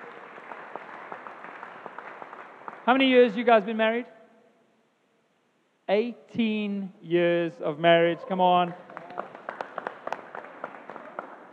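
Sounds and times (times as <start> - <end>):
audience applause: 0.0 - 3.0, 8.2 - 11.5
speech: 2.9 - 4.2, 5.9 - 8.9.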